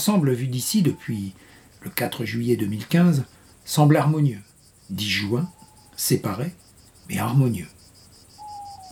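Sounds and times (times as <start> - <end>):
speech: 0.0 - 7.8
faint hiss: 0.0 - 8.9
toad whistled call: 0.5 - 1.2, 5.0 - 6.1, 8.3 - 8.9.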